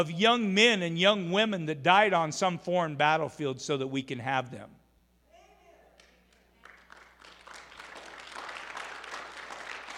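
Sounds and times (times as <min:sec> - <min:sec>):
speech: 0:00.0 - 0:04.8
audience applause: 0:06.6 - 0:09.9.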